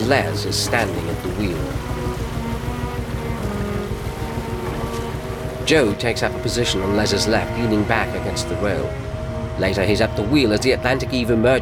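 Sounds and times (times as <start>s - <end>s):
canal barge engine drone on narrow canal waters: 0.0s - 11.6s
speech: 0.1s - 2.2s, 5.7s - 9.0s, 9.6s - 11.6s.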